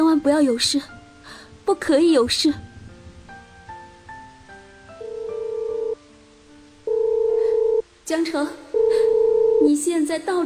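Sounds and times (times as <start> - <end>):
speech: 0.2 - 1.0, 1.7 - 2.7, 8.1 - 10.4
phone ringing on a call: 5.0 - 6.0, 6.9 - 7.8, 8.8 - 9.7.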